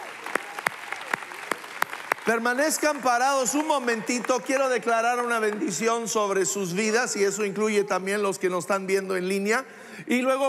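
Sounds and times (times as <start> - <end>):
audience applause: 0.0 - 6.1
speech: 2.3 - 10.4.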